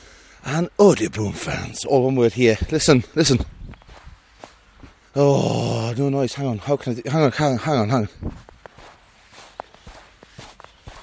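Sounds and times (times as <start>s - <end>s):
speech: 0.5s - 3.6s, 5.2s - 8.5s
footsteps crunching through fresh snow: 2.5s - 5.7s, 7.3s - 11.0s.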